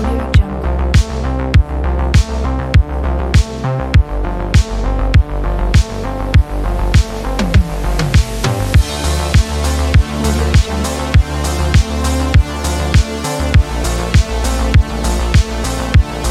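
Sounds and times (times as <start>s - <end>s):
80s retro synthwave music: 0.0s - 16.3s.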